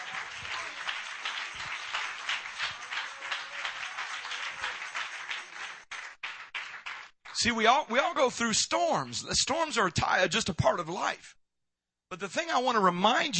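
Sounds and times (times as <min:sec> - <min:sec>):
crowd clapping: 0:00.0 - 0:08.1
speech: 0:07.4 - 0:11.4, 0:12.1 - 0:13.3.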